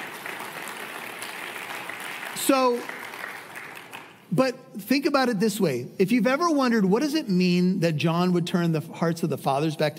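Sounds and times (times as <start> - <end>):
crowd applauding: 0.0 - 4.3
speech: 2.4 - 3.0, 4.3 - 9.9.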